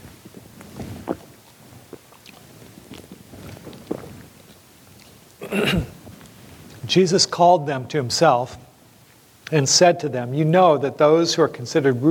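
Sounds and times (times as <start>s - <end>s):
person drinking water, sipping and swallowing: 0.0s - 6.8s
speech: 5.5s - 6.0s, 6.9s - 8.6s, 9.5s - 12.0s.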